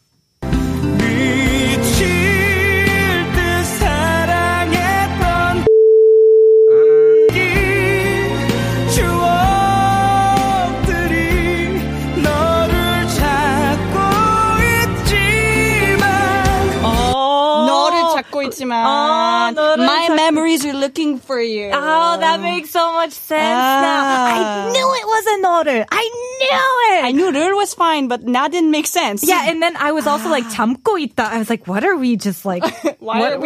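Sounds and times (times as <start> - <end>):
K-pop song played at normal speed: 0.4 - 5.8, 6.7 - 20.8, 21.7 - 24.9
speech: 20.6 - 33.4
laughter: 32.6 - 33.4.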